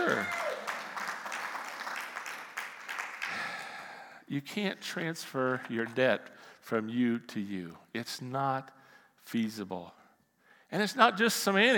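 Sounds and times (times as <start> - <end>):
audience clapping: 0.0 - 4.0
speech: 4.3 - 10.0, 10.7 - 11.7.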